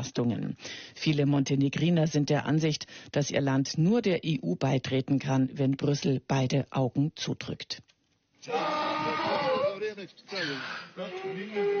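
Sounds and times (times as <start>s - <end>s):
speech: 0.0s - 8.8s, 9.9s - 11.7s
hungry donkey braying: 8.5s - 11.7s.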